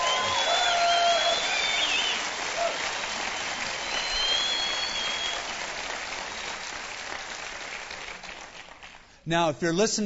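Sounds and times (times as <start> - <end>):
faint whistles: 0.0 - 2.2, 3.4 - 5.5
audience applause: 0.0 - 9.2
speech: 9.3 - 10.0.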